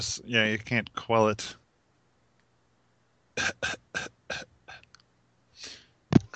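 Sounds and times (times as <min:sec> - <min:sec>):
speech: 0:00.0 - 0:01.6, 0:03.4 - 0:04.5
person coughing: 0:03.4 - 0:04.4.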